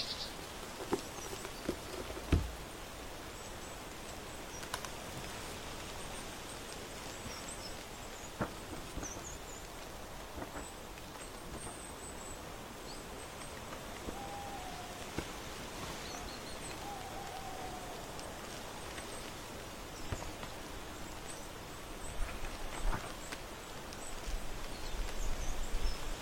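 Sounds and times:
crunchy autumn leaves rustling on a porch: 0:00.0 - 0:26.1
steady dense crackling hiss: 0:00.0 - 0:26.1.

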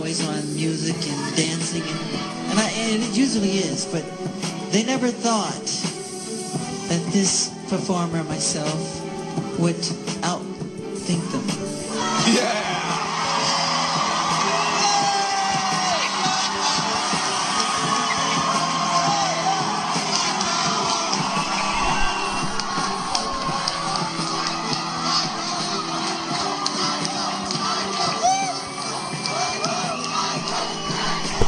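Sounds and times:
speech: 0:00.1 - 0:05.9, 0:06.9 - 0:10.5, 0:11.1 - 0:11.6, 0:12.3 - 0:12.7
crowd yelling: 0:11.8 - 0:31.4.

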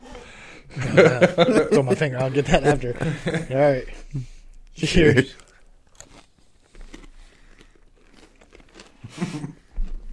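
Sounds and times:
laughter: 0:00.7 - 0:05.4
speech: 0:01.0 - 0:05.4
crunching barbecue-flavored chips: 0:04.8 - 0:10.1.

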